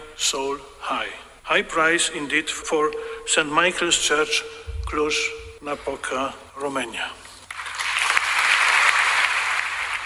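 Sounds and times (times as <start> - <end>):
speech: 0.2 - 7.2
crowd applauding: 7.5 - 10.0.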